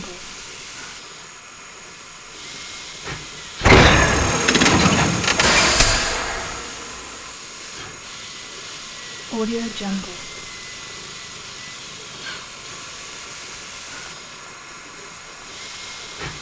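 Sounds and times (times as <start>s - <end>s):
steam engine chugs: 3.6s - 7.3s.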